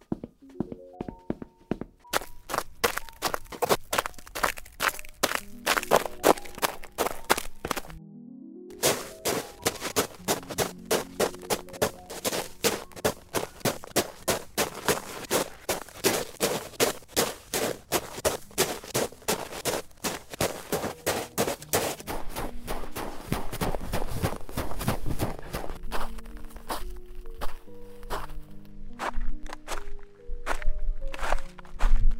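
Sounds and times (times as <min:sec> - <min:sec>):
human footsteps: 0:00.0 - 0:08.0, 0:08.8 - 0:32.1.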